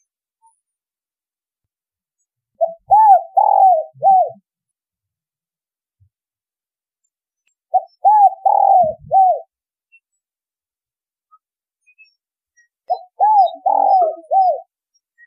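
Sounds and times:
spotted dove cooing: 0:02.6 - 0:04.4, 0:07.7 - 0:09.5, 0:12.9 - 0:14.7.

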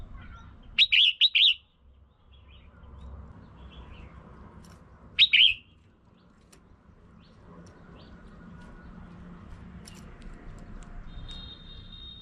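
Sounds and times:
red-whiskered bulbul calls: 0:00.8 - 0:01.7, 0:05.2 - 0:05.7.

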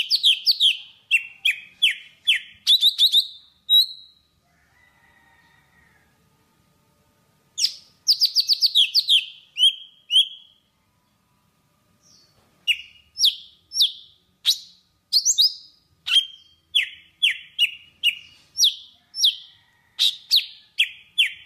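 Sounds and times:
Java sparrow singing: 0:00.0 - 0:04.2, 0:07.6 - 0:10.6, 0:12.1 - 0:21.4.

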